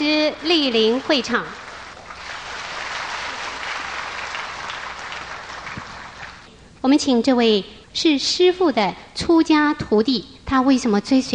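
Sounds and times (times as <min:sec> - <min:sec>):
speech: 0:00.3 - 0:01.6, 0:06.8 - 0:11.3
large crowd applauding: 0:00.3 - 0:06.5.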